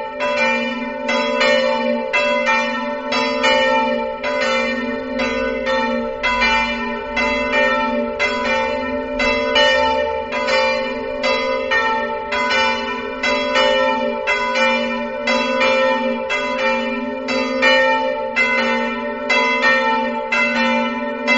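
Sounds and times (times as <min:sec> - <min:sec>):
bells: 0:00.0 - 0:21.3.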